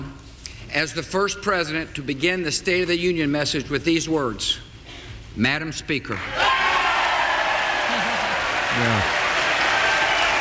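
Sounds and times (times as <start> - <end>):
speech: 0.8 - 4.7, 5.4 - 6.6
joint session audience applauding: 6.4 - 10.3.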